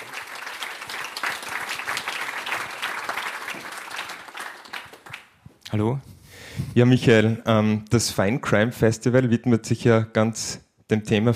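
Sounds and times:
audience applause: 0.0s - 5.4s
speech: 5.7s - 11.3s.

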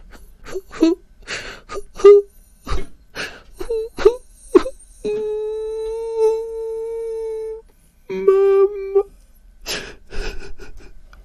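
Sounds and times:
voice imitating a child's pitiful crying and whimpering: 0.4s - 1.0s, 1.7s - 2.9s, 3.6s - 9.1s.

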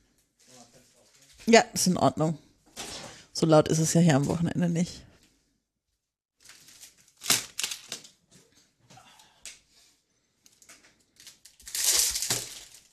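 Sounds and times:
speech: 1.5s - 2.4s, 3.4s - 5.1s
plastic snack packaging crinkling: 6.4s - 8.2s, 10.5s - 12.9s.

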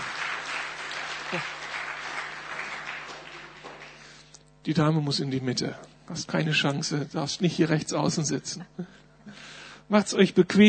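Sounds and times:
audience applause: 0.0s - 4.3s
speech: 1.3s - 1.6s, 4.7s - 10.6s.

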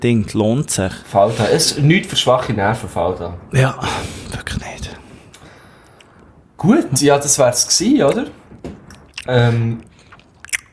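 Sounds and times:
speech: 0.0s - 5.0s, 6.6s - 9.9s
person chewing dates: 5.8s - 6.1s, 8.9s - 10.7s.

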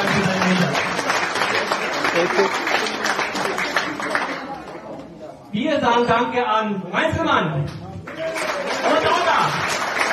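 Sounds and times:
audience applause: 0.0s - 4.8s, 8.1s - 10.1s
speech: 5.8s - 7.8s.

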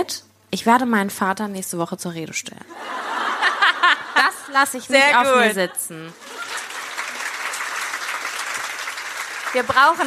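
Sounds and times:
speech: 0.0s - 3.0s, 4.2s - 6.2s, 9.5s - 10.0s
laughter: 2.7s - 7.6s
applause sound effect played from a soundboard: 6.3s - 10.0s.

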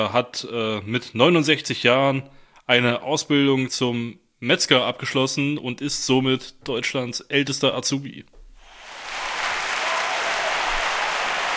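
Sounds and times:
speech: 0.0s - 8.4s
applause: 8.7s - 11.5s.

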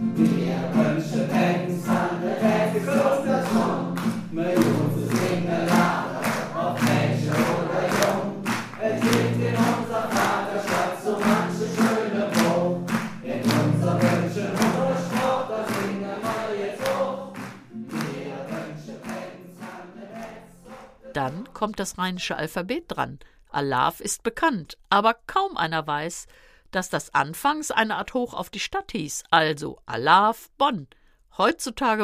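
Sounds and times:
audience singing along to carnival song: 0.0s - 21.2s
speech: 21.8s - 32.0s.

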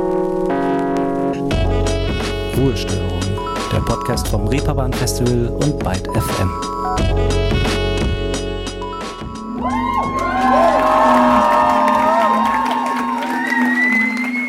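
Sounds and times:
loud music: 0.0s - 14.4s
speech: 2.6s - 7.8s
festival crowd cheering in a club: 9.5s - 14.4s.

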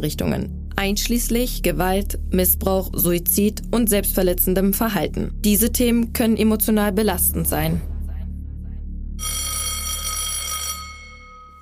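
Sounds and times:
speech: 0.0s - 7.9s
school bell ringing: 9.2s - 11.6s.

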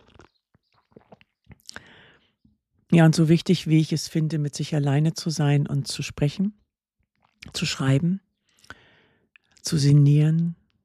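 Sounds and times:
person sipping coffee: 0.0s - 2.4s, 8.4s - 9.6s
speech: 2.9s - 6.6s, 7.6s - 8.2s, 9.6s - 10.6s.

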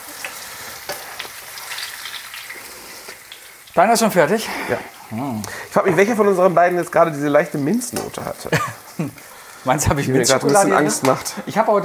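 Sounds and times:
marshmallows deep-frying in hot fat: 0.0s - 11.8s
speech: 3.8s - 11.8s.

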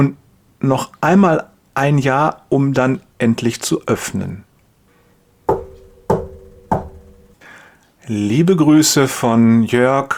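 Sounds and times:
speech: 0.0s - 4.5s, 8.1s - 10.1s
firm knocks on a wooden surface: 5.5s - 7.4s.

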